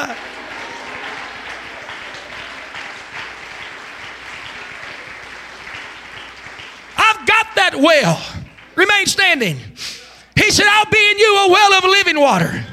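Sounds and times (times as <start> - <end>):
shouts and cheers of hallelujah: 0.0 - 2.8
audience clapping: 0.0 - 9.6
speech: 7.7 - 12.7.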